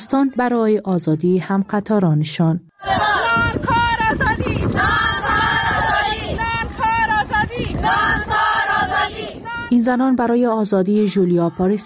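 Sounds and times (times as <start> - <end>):
speech: 0.0 - 4.2, 9.8 - 11.8
crowd of protesting women chanting slogans: 2.7 - 11.8
wind rumble: 2.8 - 11.8.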